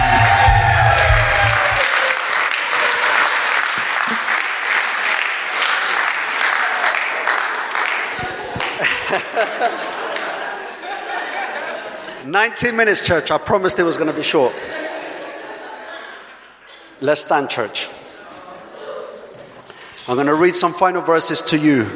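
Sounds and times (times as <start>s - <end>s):
audience applause: 0.0s - 10.6s
laughter: 3.7s - 4.5s, 8.0s - 12.3s, 14.0s - 16.9s
speech: 12.4s - 14.8s, 17.0s - 18.0s, 20.1s - 21.9s.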